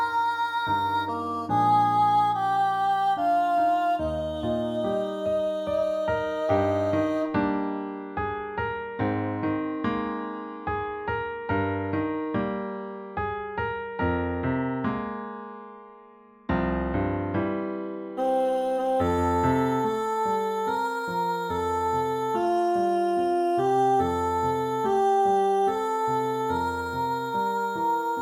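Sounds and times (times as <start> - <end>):
soprano singing: 0.0 - 7.7, 18.2 - 28.1
piano accompaniment: 0.0 - 28.1.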